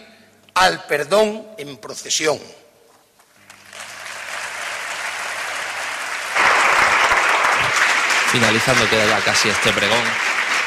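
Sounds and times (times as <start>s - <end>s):
speech: 0.6s - 2.6s, 8.3s - 10.4s
audience applause: 3.6s - 10.6s.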